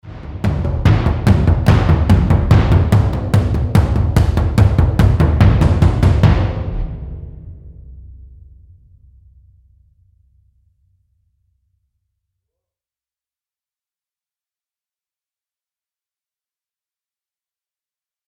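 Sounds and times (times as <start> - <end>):
primal drums: 0.0 - 9.6.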